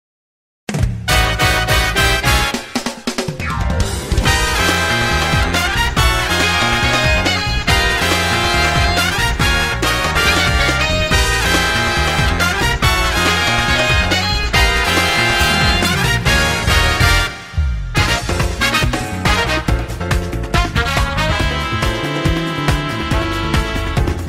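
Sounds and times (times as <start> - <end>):
brass music: 1.0 - 24.2.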